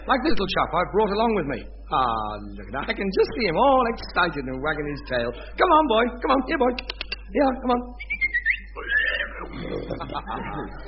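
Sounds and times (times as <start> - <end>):
speech: 0.1 - 8.2, 9.4 - 10.8
pig Aubrey squealing and grunting in a radio comedy: 8.4 - 9.9
laughter: 9.4 - 10.8.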